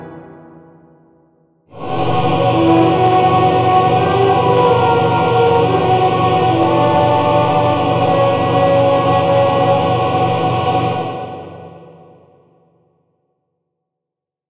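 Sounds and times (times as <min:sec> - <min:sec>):
cinematic entrance music: 0:00.0 - 0:01.1, 0:01.7 - 0:11.6.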